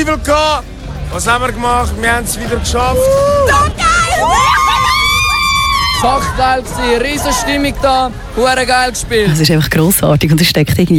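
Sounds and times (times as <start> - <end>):
speech: 0.0 - 4.9, 6.0 - 10.9
fans cheering at public viewing: 2.7 - 8.6.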